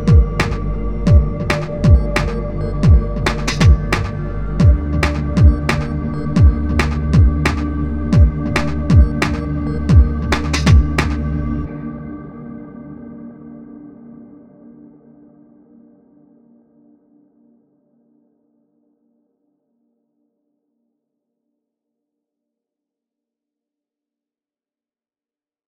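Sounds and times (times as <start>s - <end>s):
beats: 0.0s - 11.3s.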